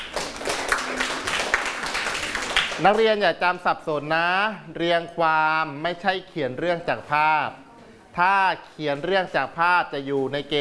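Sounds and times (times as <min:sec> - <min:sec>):
classmates clapping for a student during a school lesson: 0:00.0 - 0:03.2
speech: 0:02.8 - 0:07.6, 0:08.2 - 0:10.5.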